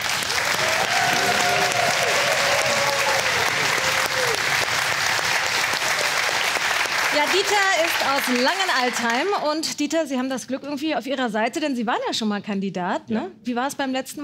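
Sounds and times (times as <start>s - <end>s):
faint cheer: 0.0s - 8.2s
studio audience applause: 0.0s - 9.7s
speech: 7.2s - 14.2s.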